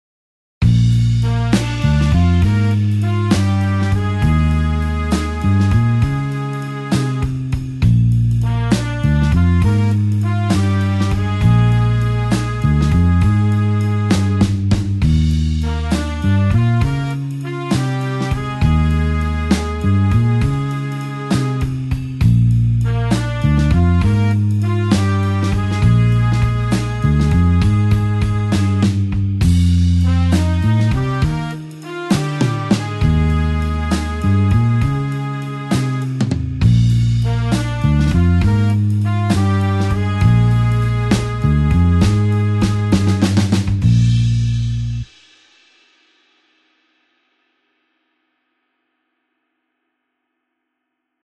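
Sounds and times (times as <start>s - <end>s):
slow blues horns in B flat: 0.6s - 45.1s.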